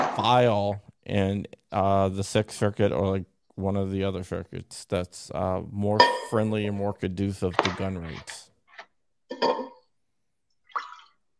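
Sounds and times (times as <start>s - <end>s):
speech: 0.2s - 8.4s
pouring a drink: 10.7s - 11.3s.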